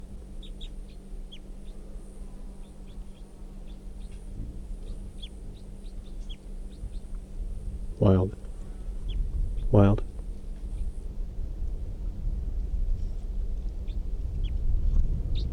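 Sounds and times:
wild bird chirping: 0.0s - 7.3s, 8.8s - 9.8s, 15.3s - 15.5s
rumble: 0.0s - 15.5s
steady low hum: 0.0s - 15.5s.

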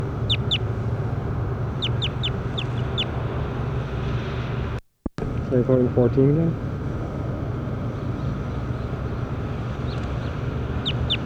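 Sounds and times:
steady low hum: 0.0s - 11.2s
bird calls in a field recording: 0.2s - 0.7s, 1.8s - 3.1s, 9.8s - 11.2s
speech: 5.5s - 6.7s.

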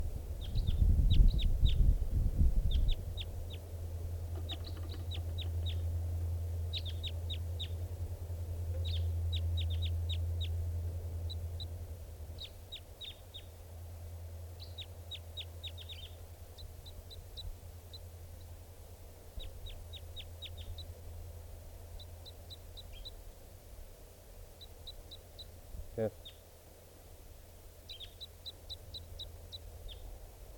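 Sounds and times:
steady low rumble: 0.0s - 18.6s
bird singing in high thin chirps: 0.4s - 1.9s, 2.6s - 8.0s, 8.7s - 13.8s, 14.4s - 18.6s, 19.3s - 21.0s, 21.8s - 23.3s, 24.5s - 26.5s, 27.8s - 30.2s.

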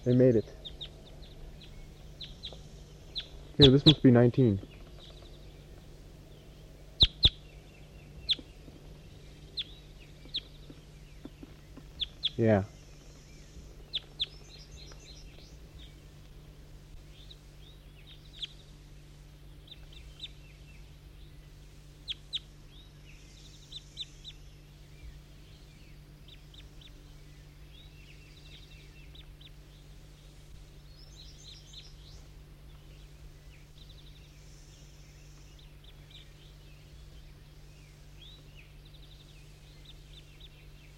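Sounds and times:
speech: 0.0s - 0.8s, 3.6s - 4.7s, 12.4s - 12.8s
bird calling in a tree: 0.0s - 40.9s.

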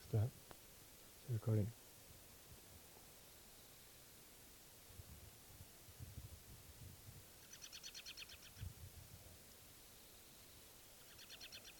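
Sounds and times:
speech: 0.1s - 0.4s, 1.3s - 1.8s
faint bird call: 7.4s - 8.6s, 10.9s - 11.7s.

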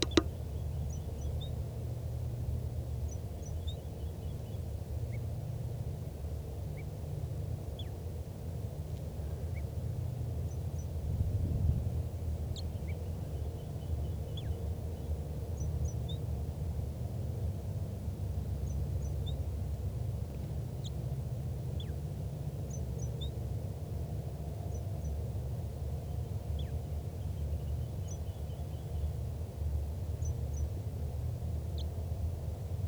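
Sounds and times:
wild bird singing softly with high chirps and twittering: 0.0s - 8.2s, 8.8s - 11.1s, 11.9s - 32.8s
steady low rumble of noise: 0.0s - 32.8s.

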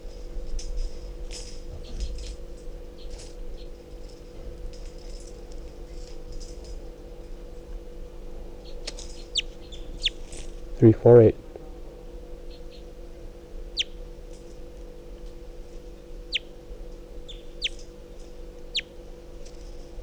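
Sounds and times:
low mechanical hum: 0.0s - 20.0s
wild bird chirping: 9.2s - 11.4s, 17.3s - 17.9s
speech: 10.8s - 11.4s.

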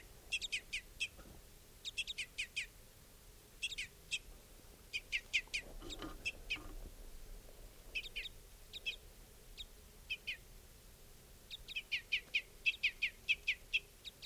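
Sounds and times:
adult bird calling in short high chip notes: 0.3s - 1.2s, 1.8s - 2.7s, 3.6s - 4.3s, 4.9s - 6.7s, 8.0s - 9.0s, 9.6s - 10.4s, 11.5s - 14.2s.

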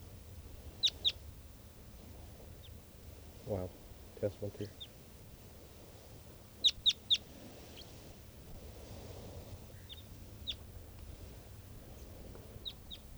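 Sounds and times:
adult male bird calling: 0.8s - 1.2s, 9.8s - 10.6s, 12.0s - 13.1s
speech: 3.4s - 4.9s.

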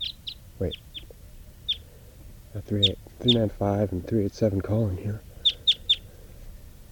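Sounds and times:
bird chirping: 0.0s - 4.3s, 5.2s - 6.3s
speech: 0.6s - 0.9s, 2.6s - 5.3s.

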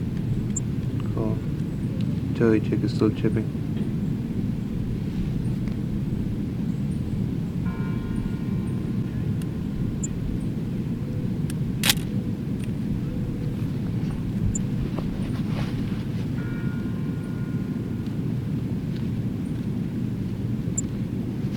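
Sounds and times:
light aircraft engine droning during carburetor check: 0.0s - 21.5s
speech: 2.4s - 3.8s
sharp click: 11.8s - 12.7s.

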